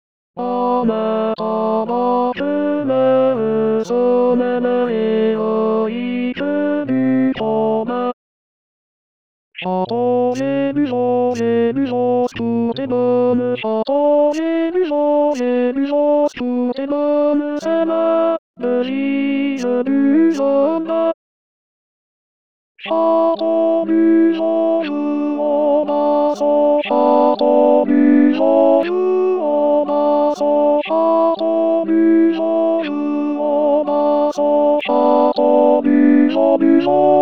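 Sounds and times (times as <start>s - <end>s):
tenor voice with accompaniment: 0.4s - 8.0s, 9.6s - 21.2s, 22.8s - 37.1s
instrumental accompaniment: 34.9s - 37.1s.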